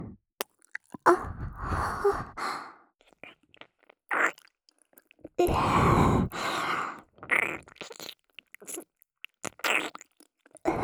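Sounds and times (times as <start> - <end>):
ASMR ear licking on the right: 0.4 - 1.2, 3.1 - 10.7.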